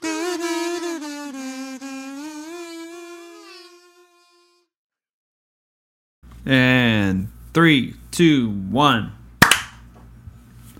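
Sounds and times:
speech: 6.4s - 9.2s
single hand clap: 9.4s - 9.8s.

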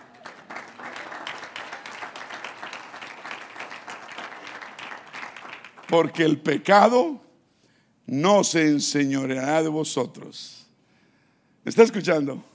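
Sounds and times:
crowd applauding: 0.0s - 6.3s
speech: 5.9s - 7.2s, 8.1s - 10.6s, 11.6s - 12.5s.

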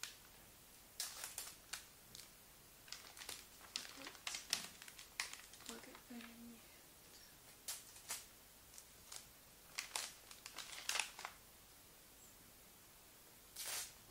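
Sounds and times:
faint low rustle: 0.0s - 11.4s
gift wrapping paper crinkling: 1.0s - 11.4s, 13.6s - 14.0s.

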